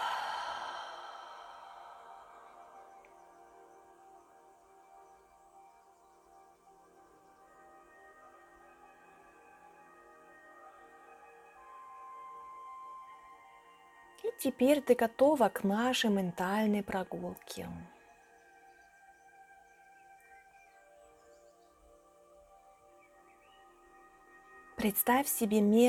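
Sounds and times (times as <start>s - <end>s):
deep breath in through the nose, out through the mouth: 0.0s - 3.1s
speech: 14.2s - 17.9s, 24.8s - 25.8s.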